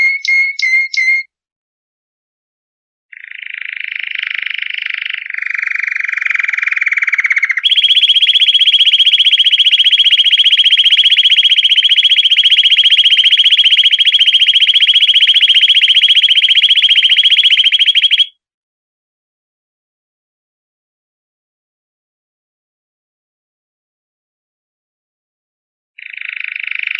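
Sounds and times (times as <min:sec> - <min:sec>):
canary song in rapid rolling tours: 0:00.0 - 0:01.3, 0:03.1 - 0:18.4, 0:26.0 - 0:26.9.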